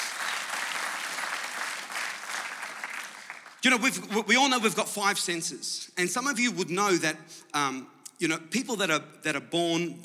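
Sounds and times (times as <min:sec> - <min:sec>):
audience round of applause: 0:00.0 - 0:03.6
speech: 0:03.6 - 0:10.0.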